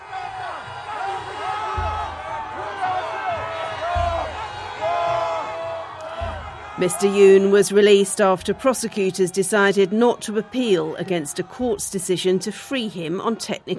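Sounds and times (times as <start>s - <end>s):
huge crowd of supporters cheering and shouting: 0.0s - 13.7s
low thumps: 0.6s - 8.9s
speech: 6.8s - 13.7s.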